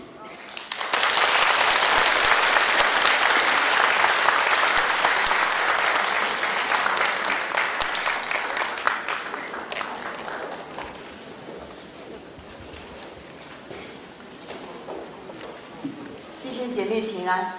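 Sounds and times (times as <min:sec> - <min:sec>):
warm audience applause: 0:00.3 - 0:13.0.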